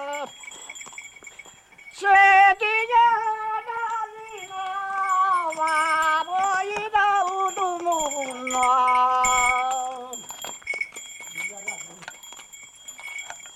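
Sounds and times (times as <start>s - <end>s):
mule driver's song: 2.0s - 10.3s.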